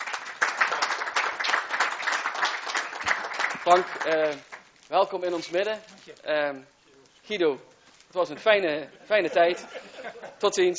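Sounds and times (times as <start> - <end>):
applause after swearing-in ceremony: 0.0 - 4.7
speech: 3.7 - 10.7
laughter: 8.4 - 10.6.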